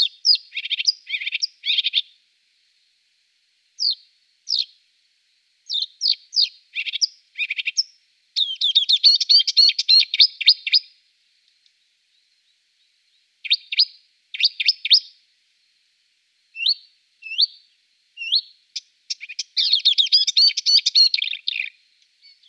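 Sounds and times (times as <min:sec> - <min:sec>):
marsh warbler song: 0:00.0 - 0:02.2, 0:03.8 - 0:04.8, 0:05.7 - 0:10.9, 0:12.1 - 0:15.2, 0:16.6 - 0:22.4.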